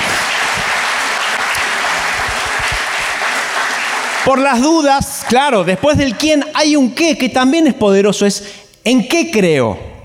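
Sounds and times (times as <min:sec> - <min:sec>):
audience applause: 0:00.0 - 0:06.6
speech: 0:04.3 - 0:09.9.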